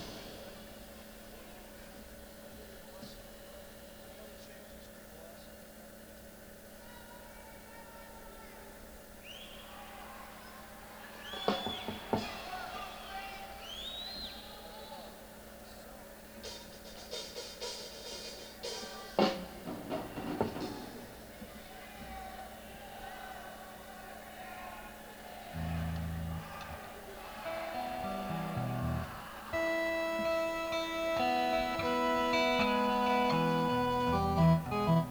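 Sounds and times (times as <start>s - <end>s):
laughter: 9.6s - 15.6s, 18.6s - 35.0s
instrument tuning: 25.5s - 35.0s.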